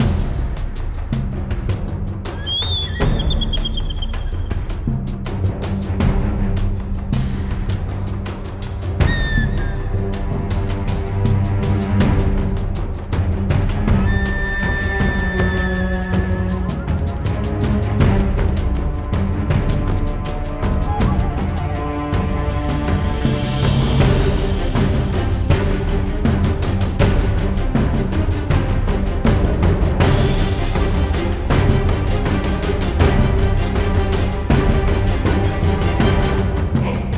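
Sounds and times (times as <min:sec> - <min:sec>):
battle background music: 0:00.0 - 0:37.1.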